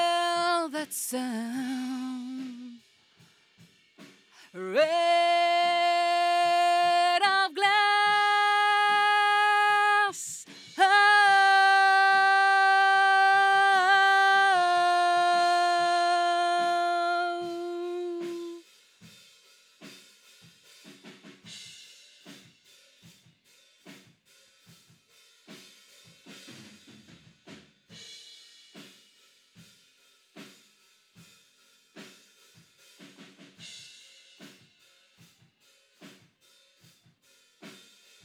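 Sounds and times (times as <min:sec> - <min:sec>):
vocals: 0:00.0 - 0:02.9, 0:04.4 - 0:18.6.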